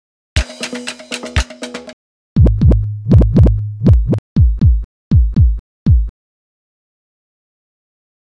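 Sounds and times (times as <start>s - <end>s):
drum: 0.4s - 6.1s.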